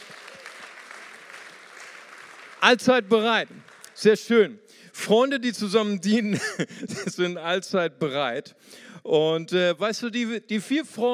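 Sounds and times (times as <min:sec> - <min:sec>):
audience applause: 0:00.0 - 0:04.0
speech: 0:02.6 - 0:11.1
laughter: 0:06.3 - 0:07.2.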